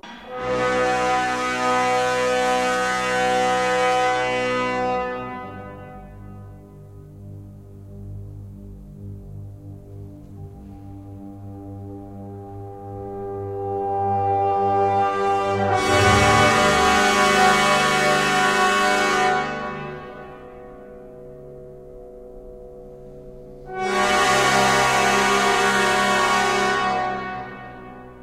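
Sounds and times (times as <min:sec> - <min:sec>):
orchestra playing: 0:00.1 - 0:05.4, 0:14.0 - 0:20.8, 0:23.7 - 0:28.2.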